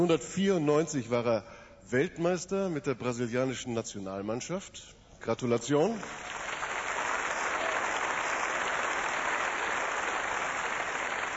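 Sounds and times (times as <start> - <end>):
speech: 0.0 - 6.4
audience applause: 6.0 - 11.3.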